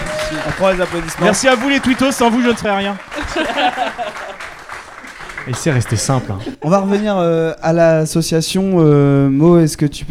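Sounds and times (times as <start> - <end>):
live audience applause: 0.0 - 6.6
speech: 0.3 - 4.4, 5.5 - 10.0
laughter: 3.1 - 7.2.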